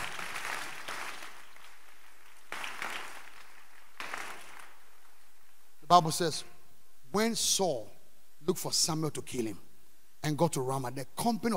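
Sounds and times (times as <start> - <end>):
audience clapping: 0.0 - 5.2
speech: 5.9 - 6.5, 7.1 - 9.6, 10.2 - 11.5.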